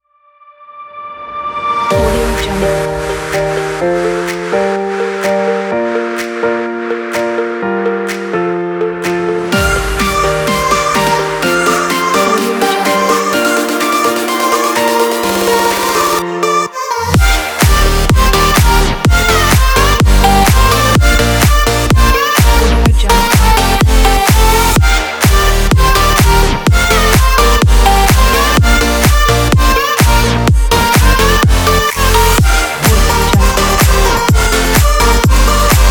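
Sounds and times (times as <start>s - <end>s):
party pop music: 1.8s - 35.8s.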